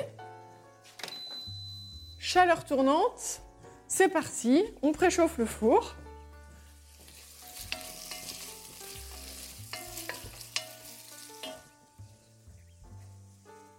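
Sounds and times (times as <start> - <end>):
speech: 2.3 - 6.0
onions sweating in a pan while stirred until confit: 6.4 - 13.7
utensil clinking and scraping against the pan: 7.0 - 11.8.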